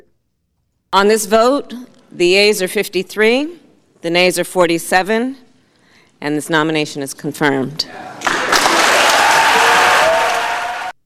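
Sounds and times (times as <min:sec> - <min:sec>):
speech: 0:00.9 - 0:05.4, 0:06.2 - 0:08.2
applause in the Senate gallery: 0:08.0 - 0:11.0.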